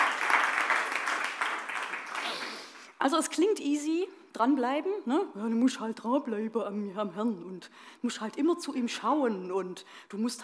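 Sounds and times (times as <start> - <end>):
audience applause: 0.0 - 2.9
speech: 3.0 - 10.4.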